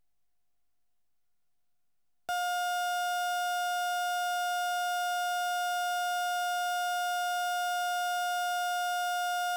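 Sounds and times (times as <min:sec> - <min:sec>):
erratic hospital pulse monitor slowing down: 0:02.3 - 0:09.5.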